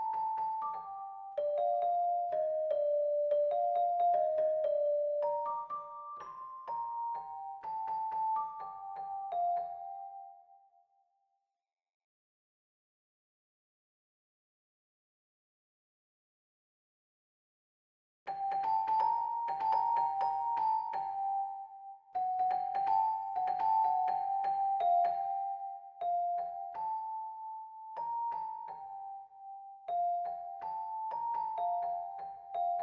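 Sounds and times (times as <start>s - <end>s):
piano: 0.0s - 10.7s, 18.3s - 32.8s.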